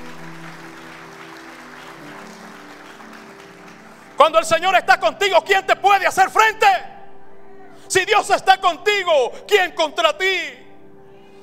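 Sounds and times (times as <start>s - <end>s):
audience applause: 0.0s - 5.1s
speech: 4.2s - 6.9s, 7.9s - 10.6s.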